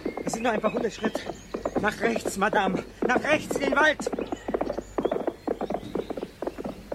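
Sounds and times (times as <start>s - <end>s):
horses' hooves clip-clopping: 0.0s - 6.9s
speech: 0.3s - 4.3s.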